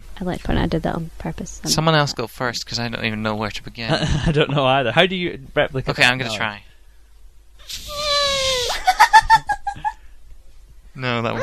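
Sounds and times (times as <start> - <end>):
speech: 0.2 - 6.7, 11.0 - 11.4
laughter: 3.8 - 4.8, 8.4 - 10.0
person imitating elephant trumpeting: 7.7 - 8.8.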